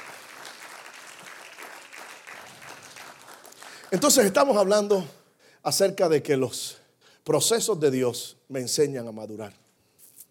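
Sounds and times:
audience applauding: 0:00.0 - 0:04.4
speech: 0:03.9 - 0:09.6.

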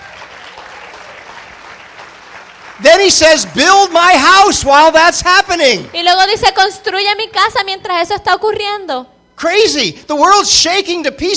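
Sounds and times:
audience applause: 0:00.0 - 0:06.0
speech: 0:02.8 - 0:11.3.

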